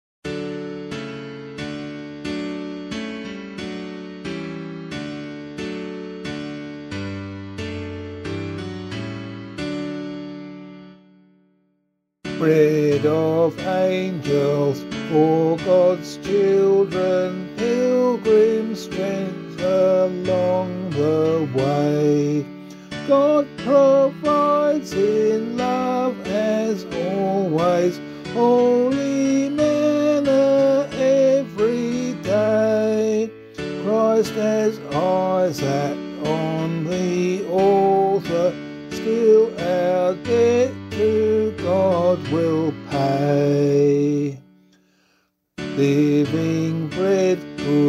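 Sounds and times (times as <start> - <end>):
person singing a hymn: 12.3 - 44.4, 45.6 - 47.8.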